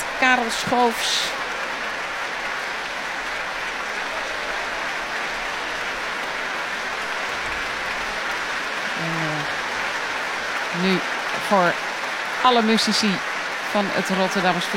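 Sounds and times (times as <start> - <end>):
concert audience applause: 0.0 - 14.7
speech: 0.2 - 1.4, 10.8 - 14.7.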